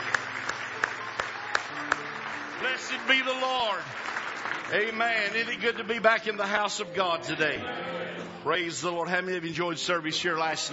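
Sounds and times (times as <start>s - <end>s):
church congregation clapping hands in praise: 0.0s - 6.7s
speech: 2.6s - 10.7s.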